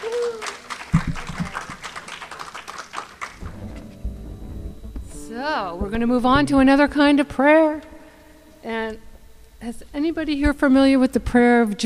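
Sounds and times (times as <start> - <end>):
short cheer: 0.0 - 0.7
audience clapping at a prayer gathering: 0.0 - 4.0
speech: 5.4 - 7.9, 9.6 - 11.8.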